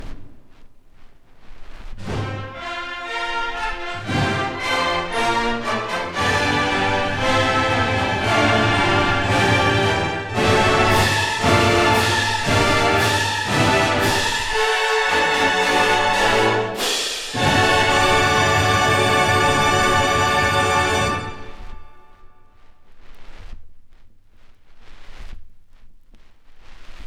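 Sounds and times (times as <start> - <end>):
fanfare: 2.2 - 22.3.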